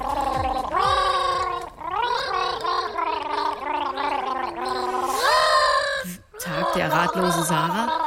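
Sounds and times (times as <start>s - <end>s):
person gargling a song: 0.0s - 8.0s
speech: 7.0s - 8.0s.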